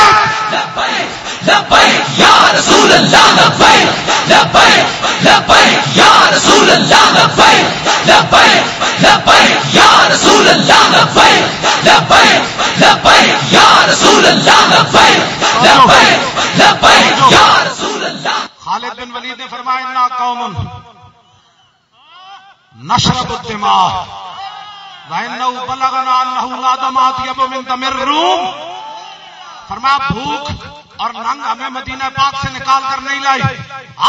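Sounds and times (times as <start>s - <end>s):
large crowd chanting a slogan in unison: 0.1s - 18.6s
speech: 22.9s - 24.2s, 25.1s - 28.7s, 29.7s - 34.0s.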